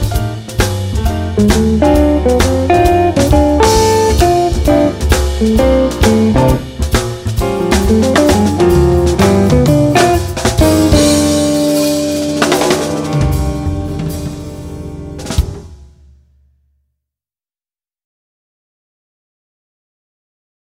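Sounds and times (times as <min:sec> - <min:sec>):
jazz guitar blues with guitar soloist: 0:00.1 - 0:15.6.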